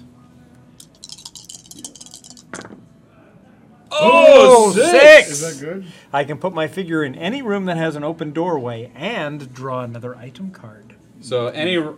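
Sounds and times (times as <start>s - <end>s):
three dice rolling and knocking together: 0.8s - 2.8s
speech: 4.0s - 11.9s.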